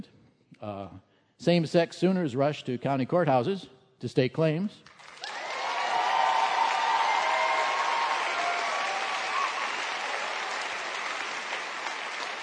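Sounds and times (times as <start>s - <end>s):
speech: 0.6s - 5.3s
audience clapping: 4.9s - 12.4s
people cheering: 5.1s - 12.4s.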